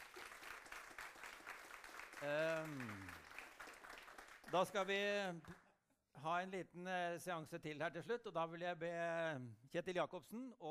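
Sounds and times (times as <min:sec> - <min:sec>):
crowd clapping: 0:00.0 - 0:05.7
speech: 0:02.2 - 0:03.3, 0:04.5 - 0:05.6, 0:06.2 - 0:10.6.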